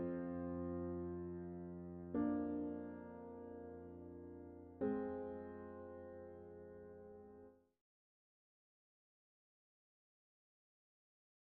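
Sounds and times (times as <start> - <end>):
piano: 0.0 - 7.8.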